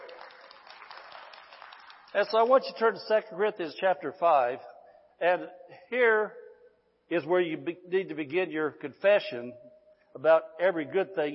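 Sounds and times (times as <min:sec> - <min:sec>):
audience clapping: 0:00.0 - 0:02.9
speech: 0:02.1 - 0:06.4, 0:07.1 - 0:11.3.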